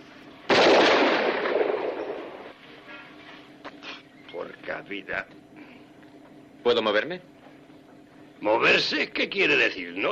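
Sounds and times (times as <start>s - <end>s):
gunshot from a gun being fired: 0.5s - 2.4s
speech: 4.8s - 5.5s, 6.6s - 7.3s, 8.4s - 10.1s.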